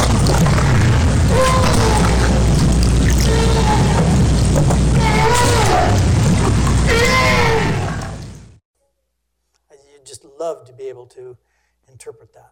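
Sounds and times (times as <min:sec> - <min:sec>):
right whale vocalization: 0:00.0 - 0:08.5
speech: 0:10.9 - 0:12.4.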